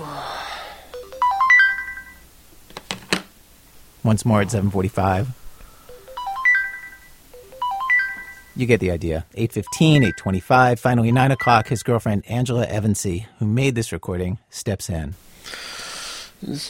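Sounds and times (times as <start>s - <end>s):
alarm clock ringing: 0.9s - 2.2s, 5.8s - 8.6s
speech: 4.0s - 5.4s, 8.6s - 15.7s, 16.4s - 16.6s.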